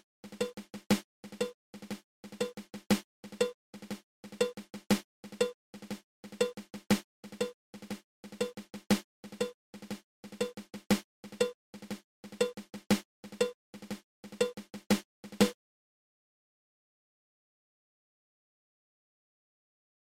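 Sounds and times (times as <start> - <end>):
triple ratamacue snare drum rudiment: 0.0 - 15.6.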